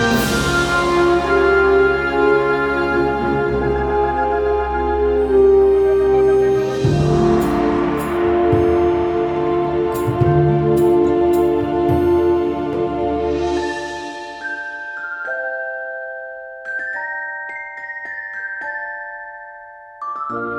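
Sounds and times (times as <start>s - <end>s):
orchestral remix: 0.0s - 15.3s, 20.3s - 20.5s.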